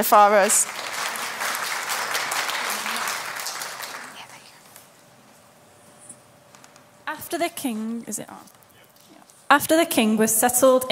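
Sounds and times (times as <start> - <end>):
speech: 0.0 - 1.1, 7.2 - 8.6, 9.5 - 10.9
audience applause: 0.0 - 4.5
audience cheering: 0.6 - 4.1.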